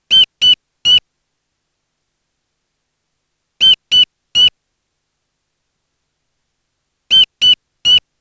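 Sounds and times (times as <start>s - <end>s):
Rhioderma rufum calling: 0.0s - 1.0s, 3.6s - 4.6s, 7.1s - 8.1s.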